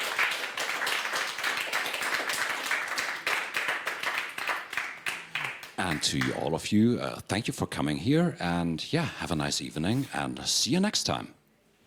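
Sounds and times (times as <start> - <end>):
audience applause: 0.0 - 6.4
speech: 5.8 - 11.4.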